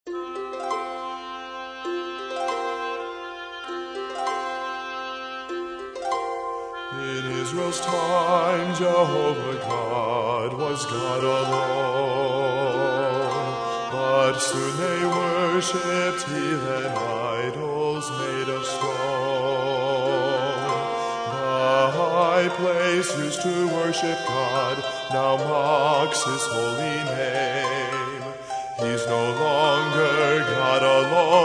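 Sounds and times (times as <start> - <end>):
trio playing: 0.1 - 31.4.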